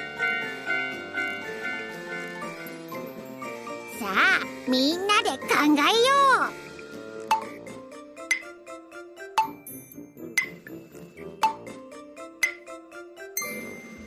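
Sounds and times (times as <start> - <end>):
railroad crossing warning bell: 0.0 - 2.7
speech: 4.0 - 6.6.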